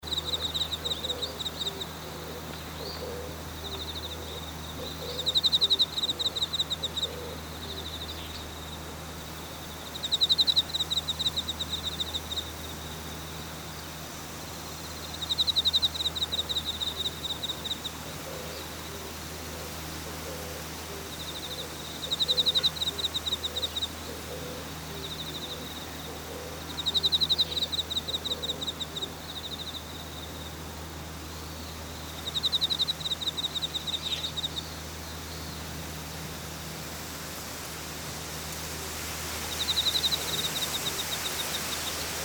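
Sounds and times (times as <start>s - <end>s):
rice field ambience: 0.0s - 42.2s.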